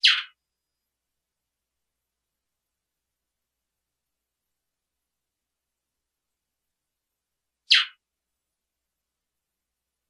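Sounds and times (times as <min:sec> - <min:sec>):
great-billed seed finch song: 0:00.0 - 0:00.4, 0:07.7 - 0:08.0.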